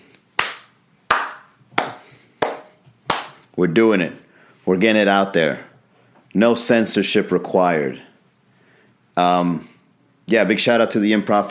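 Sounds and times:
slow clap: 0.0s - 3.6s
speech: 3.6s - 5.7s, 6.3s - 8.1s, 9.2s - 9.7s, 10.3s - 11.4s.

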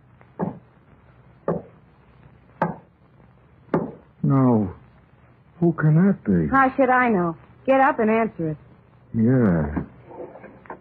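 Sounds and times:
heavy knocking on a door: 0.4s - 0.6s, 1.5s - 1.7s, 2.6s - 2.9s, 3.7s - 4.0s
speech: 4.3s - 4.8s, 5.6s - 9.9s.

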